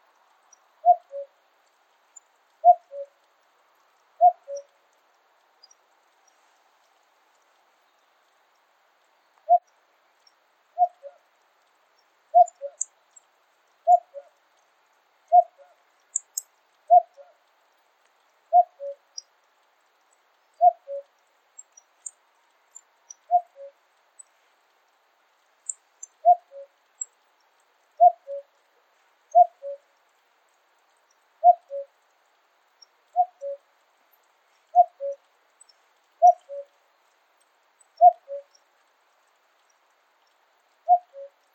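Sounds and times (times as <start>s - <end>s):
Cuculus canorus calling in Pallars Sobirà: 0.8s - 1.4s, 2.6s - 3.2s, 4.2s - 4.8s, 9.4s - 9.7s, 10.8s - 11.2s, 12.3s - 12.9s, 13.8s - 14.4s, 15.3s - 17.4s, 18.5s - 19.1s, 20.6s - 21.1s, 23.1s - 23.8s, 26.0s - 26.8s, 28.0s - 28.6s, 29.3s - 29.8s, 31.4s - 32.0s, 33.1s - 33.6s, 34.7s - 35.3s, 36.2s - 36.8s, 38.0s - 38.6s, 40.8s - 41.5s.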